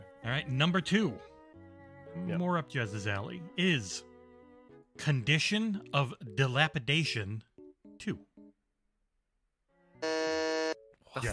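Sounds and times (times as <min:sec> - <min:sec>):
speech: 0:00.3 - 0:01.3, 0:02.2 - 0:04.1, 0:05.0 - 0:08.3
game show buzzer: 0:10.0 - 0:10.9.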